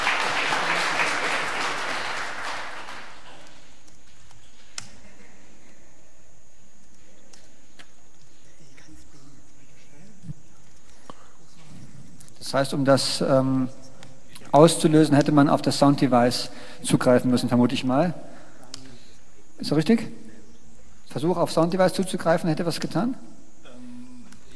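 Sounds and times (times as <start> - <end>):
audience applause: 0.0 - 3.8
speech: 12.5 - 13.8, 14.5 - 18.3, 19.6 - 20.2, 21.2 - 23.3.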